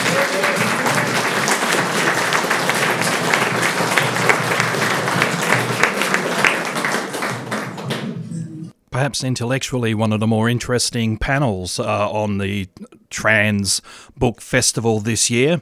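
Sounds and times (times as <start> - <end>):
audience applause: 0.0 - 8.4
speech: 9.0 - 15.6.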